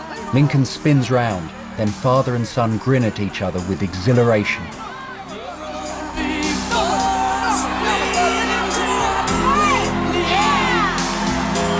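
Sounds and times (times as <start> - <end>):
crowd cheering a new champion: 0.0 - 11.7
speech: 0.3 - 4.8.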